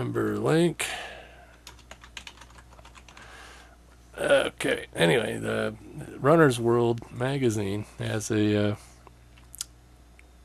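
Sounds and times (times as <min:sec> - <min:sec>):
speech: 0:00.0 - 0:01.0, 0:04.2 - 0:08.9
steady low hum: 0:00.0 - 0:10.4
typing on a computer keyboard: 0:01.5 - 0:03.2.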